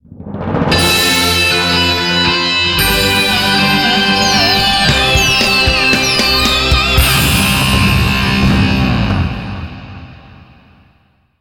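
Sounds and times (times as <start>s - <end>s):
champion win jingle: 0.7s - 9.3s.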